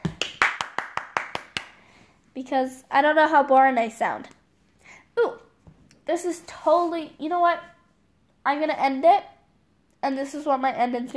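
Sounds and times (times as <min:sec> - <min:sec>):
hand clapping: 0:00.0 - 0:01.8
speech: 0:02.4 - 0:04.4, 0:06.1 - 0:07.7, 0:08.4 - 0:09.3, 0:10.0 - 0:11.1.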